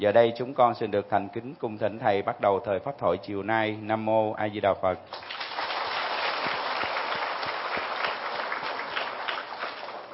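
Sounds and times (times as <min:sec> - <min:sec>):
speech: 0:00.0 - 0:05.4
audience applause at a Buddhist dharma session during the Vu Lan season: 0:05.2 - 0:10.1.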